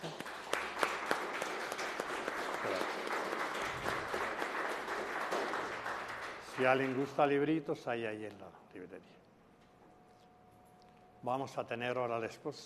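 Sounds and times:
audience applause: 0.0s - 7.3s
speech: 6.6s - 9.2s, 11.2s - 12.6s.

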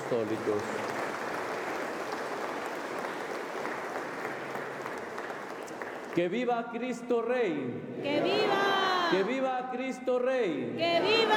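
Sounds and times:
audience applause: 0.0s - 6.2s
speech: 0.1s - 1.0s, 6.2s - 11.3s.

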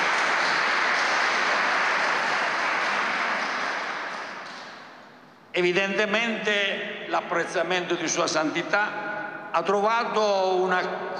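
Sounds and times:
crowd applauding: 0.0s - 5.0s
speech: 5.6s - 11.1s.

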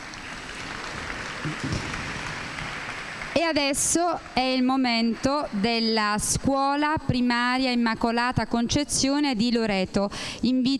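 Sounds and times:
audience applause: 0.0s - 5.6s
speech: 1.4s - 2.0s, 3.4s - 10.7s.

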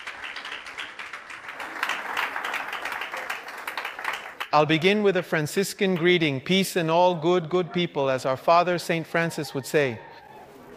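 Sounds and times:
audience applause: 0.0s - 4.5s
speech: 4.5s - 10.1s.

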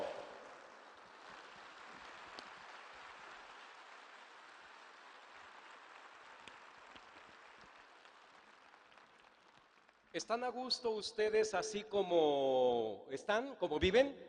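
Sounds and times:
audience applause: 0.0s - 10.1s
speech: 10.2s - 14.2s.

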